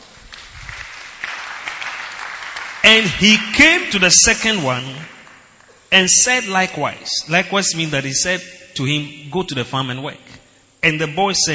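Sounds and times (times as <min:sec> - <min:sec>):
audience clapping: 0:00.0 - 0:05.8
speech: 0:02.9 - 0:05.2, 0:05.9 - 0:11.5.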